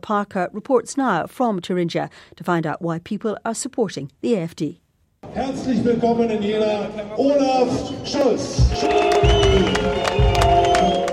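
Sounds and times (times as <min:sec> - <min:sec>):
speech: 0:00.0 - 0:10.0
polite applause at a campaign event in Jena Thuringia: 0:08.1 - 0:11.1
crowd booing at a campaign event in Jena Thuringia: 0:08.6 - 0:11.1.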